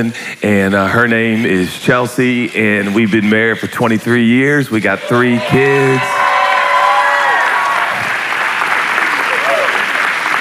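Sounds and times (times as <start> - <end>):
speech: 0.0 - 6.2
scattered voices and whoops: 5.0 - 10.1
crowd applause: 5.0 - 10.3.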